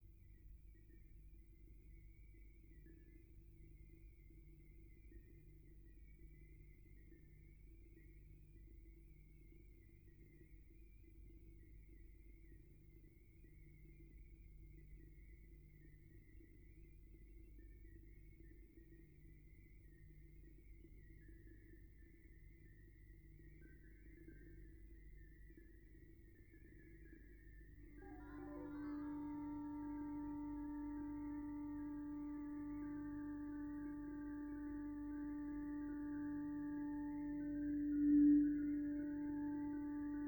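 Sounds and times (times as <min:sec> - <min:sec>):
backing track: 0:28.0 - 0:40.2.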